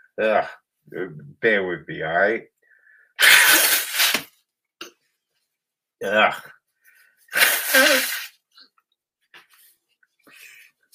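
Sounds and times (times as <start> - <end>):
speech: 0.2 - 2.5, 6.0 - 6.6, 7.3 - 8.2
person blowing nose: 3.2 - 4.3, 7.3 - 8.4.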